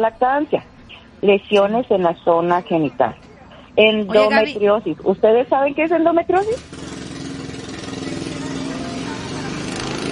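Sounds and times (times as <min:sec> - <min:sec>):
speech: 0:00.0 - 0:03.2, 0:03.8 - 0:06.8
cars passing outside: 0:00.9 - 0:10.0.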